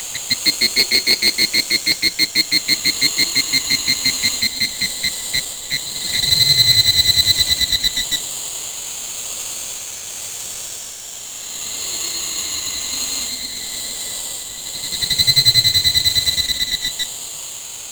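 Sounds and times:
cricket ambience: 0:00.0 - 0:08.3, 0:12.1 - 0:17.1.

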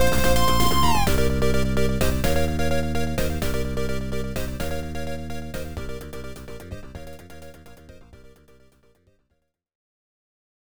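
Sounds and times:
tension music: 0:00.0 - 0:08.4.

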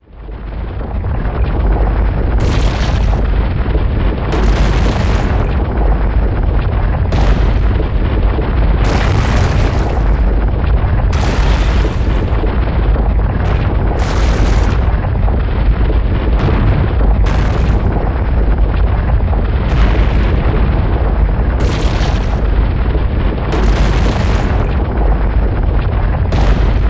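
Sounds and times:
fire: 0:00.0 - 0:26.8.

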